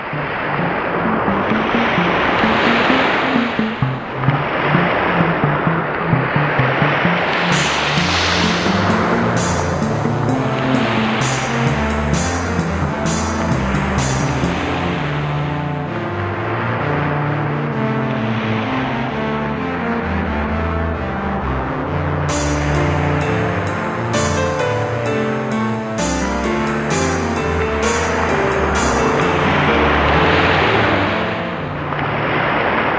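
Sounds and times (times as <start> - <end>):
music: 0.2 - 32.8.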